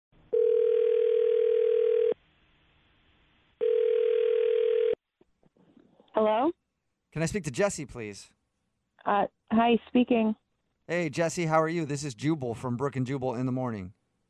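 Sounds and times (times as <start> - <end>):
telephone dial tone: 0.3 - 2.1, 3.6 - 5.0
speech: 7.2 - 8.4, 9.1 - 14.0.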